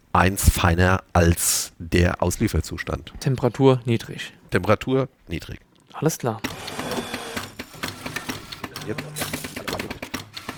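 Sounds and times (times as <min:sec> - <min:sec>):
speech: 0:00.2 - 0:06.7, 0:08.8 - 0:09.4
espresso machine with grinder set finer pumping at low temperature: 0:06.4 - 0:10.5.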